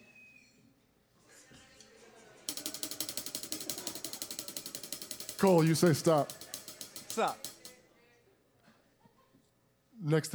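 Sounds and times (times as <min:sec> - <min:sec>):
spinning prize-wheel sound effect, Wheel of Influence: 0:02.5 - 0:07.8
speech: 0:05.4 - 0:06.4, 0:07.2 - 0:07.5, 0:10.0 - 0:10.3.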